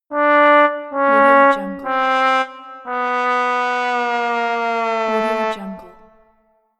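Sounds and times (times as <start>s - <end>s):
sad trombone: 0.1s - 6.2s.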